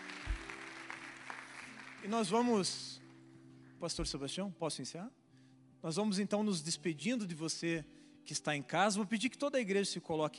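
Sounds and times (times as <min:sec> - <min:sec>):
audience applause: 0:00.0 - 0:02.8
speech: 0:02.0 - 0:02.9, 0:03.8 - 0:05.2, 0:05.8 - 0:10.3.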